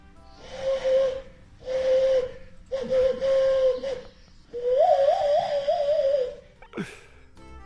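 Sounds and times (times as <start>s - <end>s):
owl call blown through cupped hands: 0.3s - 6.4s.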